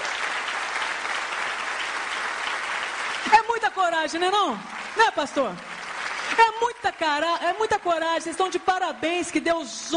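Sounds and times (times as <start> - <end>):
audience applause: 0.0 - 7.5
speech: 3.6 - 5.7, 6.3 - 9.9.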